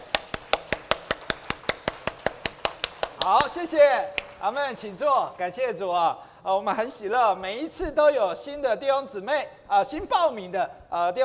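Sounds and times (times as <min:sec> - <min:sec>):
applause: 0:00.0 - 0:05.4
speech: 0:03.2 - 0:11.2.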